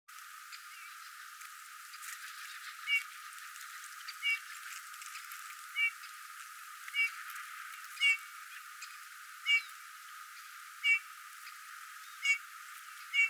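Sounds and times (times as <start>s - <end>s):
Eurasian bullfinch Pyrrhula pyrrhula calling: 5.8s - 6.0s, 7.0s - 7.2s, 8.0s - 8.2s, 9.4s - 9.7s, 10.8s - 11.1s, 12.0s - 12.4s, 13.0s - 13.2s.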